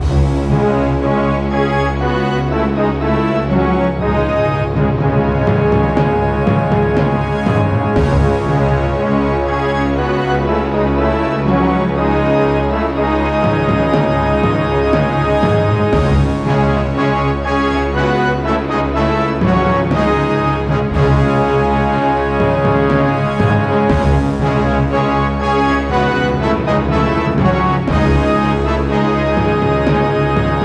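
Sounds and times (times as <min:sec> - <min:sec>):
Roman-style fanfare: 0:00.0 - 0:30.6.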